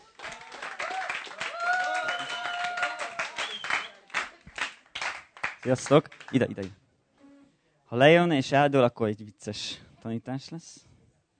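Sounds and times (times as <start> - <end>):
audience applause: 0.0 - 6.7
speech: 5.6 - 6.8, 7.9 - 10.9.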